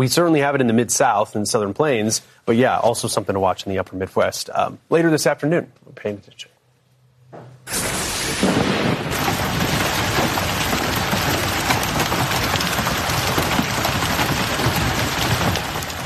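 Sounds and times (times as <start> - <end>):
speech: 0.0 - 6.6
hailstones hammering a parked car in Colorado Springs: 7.7 - 16.0.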